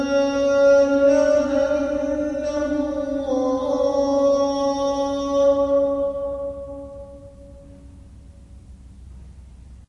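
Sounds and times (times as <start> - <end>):
adhan call to prayer: 0.0 - 7.9.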